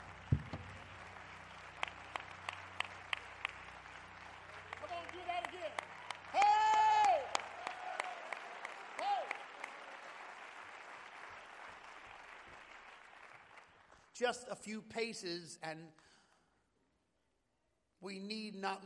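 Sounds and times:
audience clapping: 0.0s - 14.3s
speech: 14.2s - 16.1s, 18.0s - 18.8s.

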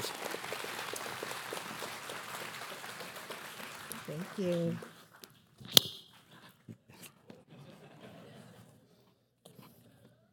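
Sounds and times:
audience applause: 0.0s - 5.0s
speech: 4.1s - 4.9s
laughter: 7.3s - 9.1s.

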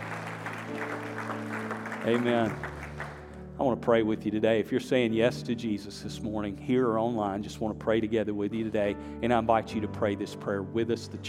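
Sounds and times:
audience applause: 0.0s - 3.4s
speech: 2.0s - 2.7s, 3.6s - 11.2s.

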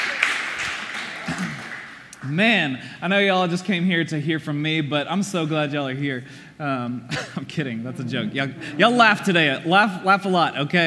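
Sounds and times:
audience round of applause: 0.0s - 2.1s
speech: 1.3s - 1.6s, 2.2s - 10.8s.

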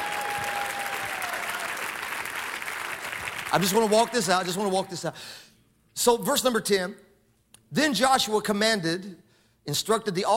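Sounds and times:
audience clapping: 0.0s - 4.9s
speech: 3.5s - 7.0s, 7.7s - 10.3s.

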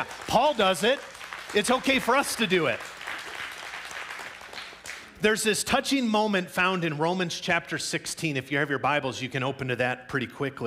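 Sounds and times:
speech: 0.0s - 2.9s, 5.2s - 10.6s
applause: 0.0s - 5.2s.

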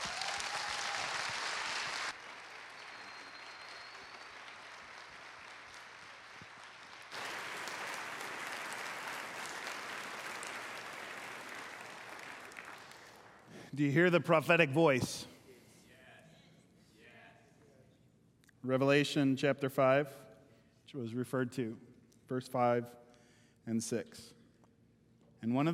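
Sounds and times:
crowd clapping: 0.0s - 13.7s
speech: 13.7s - 15.3s, 18.7s - 20.2s, 20.9s - 23.0s, 23.7s - 24.4s, 25.4s - 25.7s.

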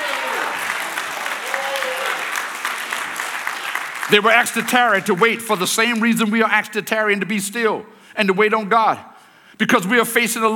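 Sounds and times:
audience applause: 0.0s - 6.0s
speech: 4.1s - 10.5s.

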